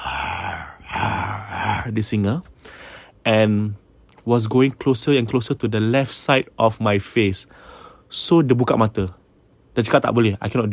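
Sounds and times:
voice imitating a lion's roar: 0.0 - 2.0
speech: 1.8 - 9.2, 9.8 - 10.7.

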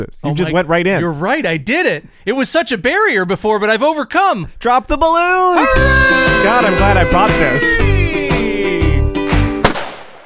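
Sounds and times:
speech: 0.0 - 8.0
laughter: 5.6 - 8.6
gunshot sound effects: 9.6 - 10.2.

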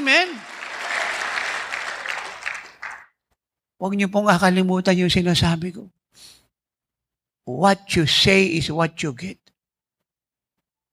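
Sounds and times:
audience clapping: 0.0 - 3.2
speech: 3.8 - 6.4, 7.5 - 9.4.

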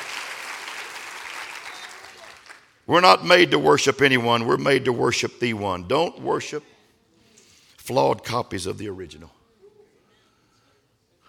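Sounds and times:
audience clapping hands: 0.0 - 2.8
speech: 2.9 - 6.7, 7.9 - 9.4.

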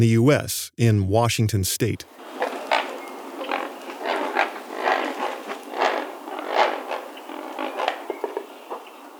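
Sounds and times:
speech: 0.0 - 2.5
great blue heron calling in flight with harsh raspy croaks: 2.2 - 9.1.

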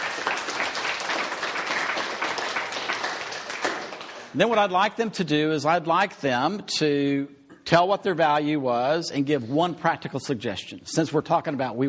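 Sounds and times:
audience applause: 0.0 - 4.3
speech: 4.4 - 11.8.

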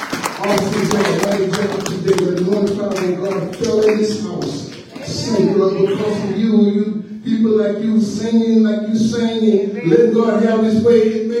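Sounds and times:
audience hand clapping: 0.0 - 5.3
speech: 0.4 - 11.3.

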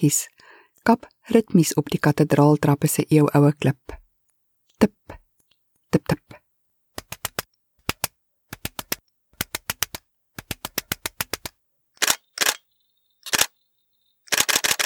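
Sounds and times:
speech: 0.0 - 4.0, 4.8 - 5.2, 5.9 - 6.3
camera shutter clicks: 12.0 - 12.6, 13.2 - 13.5, 14.3 - 14.8.

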